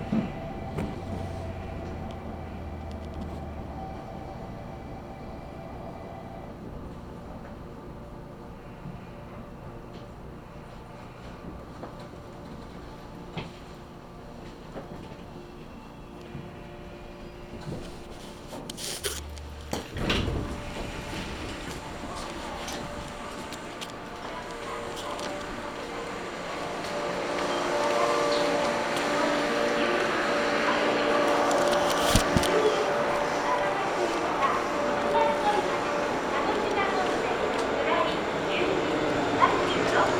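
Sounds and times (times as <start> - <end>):
Kagoshima Main Line train ride rumble: 0.0 - 40.1.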